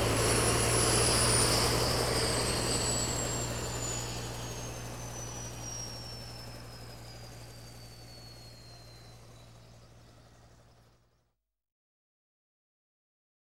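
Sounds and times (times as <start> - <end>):
helicopter landing: 0.0 - 10.9.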